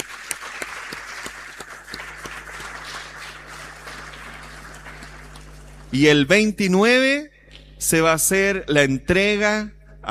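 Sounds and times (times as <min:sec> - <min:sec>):
audience applause: 0:00.0 - 0:05.9
speech: 0:05.9 - 0:10.0.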